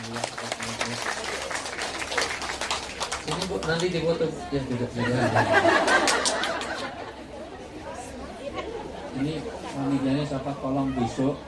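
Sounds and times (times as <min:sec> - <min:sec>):
audience applause: 0:00.0 - 0:04.0, 0:05.7 - 0:06.9
speech: 0:03.3 - 0:06.4, 0:09.2 - 0:11.4
laughter: 0:04.8 - 0:07.6.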